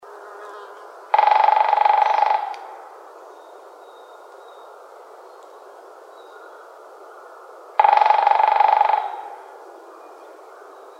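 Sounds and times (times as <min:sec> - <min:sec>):
Japanese green woodpecker buzzy bursts: 0:01.1 - 0:02.8, 0:07.8 - 0:09.4.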